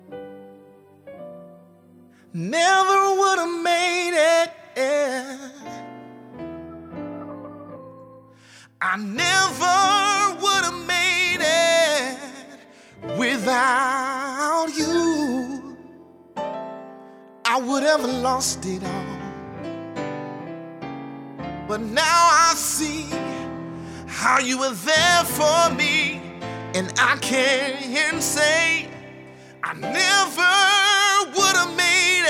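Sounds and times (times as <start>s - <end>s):
gospel solo singing: 2.3s - 5.9s, 8.4s - 16.0s, 17.5s - 19.3s, 21.7s - 32.2s.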